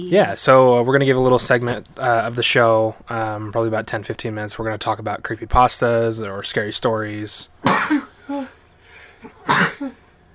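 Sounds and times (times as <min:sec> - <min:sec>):
speech: 0:00.0 - 0:08.5
person sneezing: 0:07.6 - 0:10.0.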